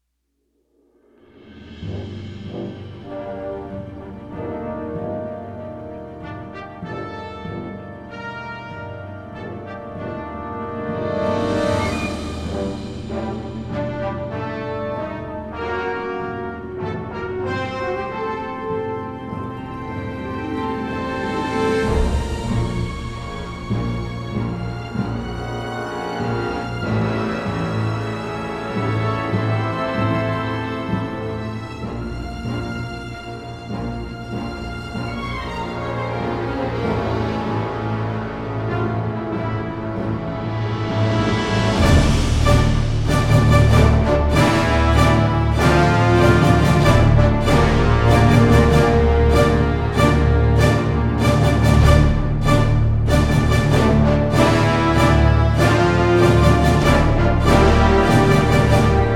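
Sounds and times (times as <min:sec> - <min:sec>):
brass instruments: 0:01.0 - 0:59.1.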